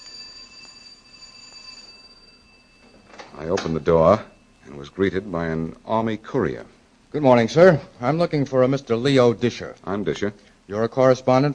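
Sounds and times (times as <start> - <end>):
doorbell ringing: 0.0 - 5.9
speech: 3.4 - 11.5.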